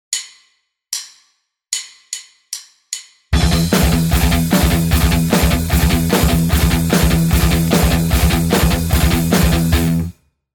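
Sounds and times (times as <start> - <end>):
guitar riff: 3.4 - 10.2.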